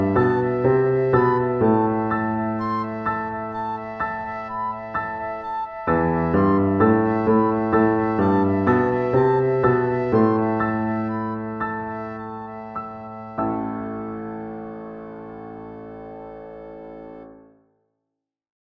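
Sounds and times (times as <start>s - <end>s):
music variations without cello: 0.0s - 14.4s.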